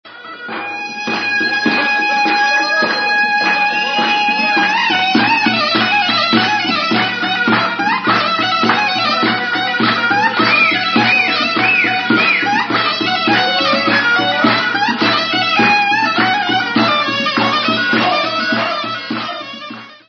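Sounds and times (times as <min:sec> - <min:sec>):
tsampouna: 0:00.3 - 0:19.9.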